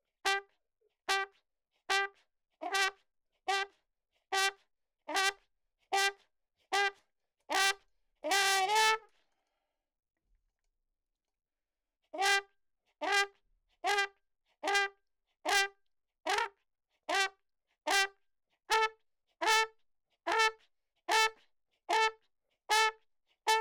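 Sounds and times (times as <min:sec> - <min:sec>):
ragtime trumpet: 0:00.3 - 0:00.5, 0:01.1 - 0:01.3, 0:01.9 - 0:03.7, 0:04.3 - 0:04.5, 0:05.1 - 0:05.4, 0:06.0 - 0:06.2, 0:06.8 - 0:09.1, 0:12.2 - 0:12.4, 0:13.0 - 0:13.3, 0:13.9 - 0:14.9, 0:15.5 - 0:15.7, 0:16.3 - 0:16.5, 0:17.1 - 0:17.3, 0:17.9 - 0:18.1, 0:18.7 - 0:19.7, 0:20.3 - 0:22.1, 0:22.7 - 0:23.5.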